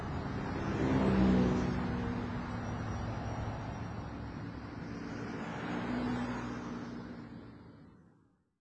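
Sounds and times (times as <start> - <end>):
traffic: 0.0 - 8.5.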